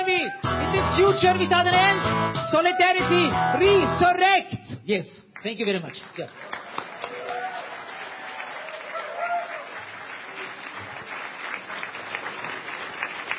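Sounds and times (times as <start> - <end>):
speech: 0.3 - 6.6
audience applause: 6.0 - 13.3.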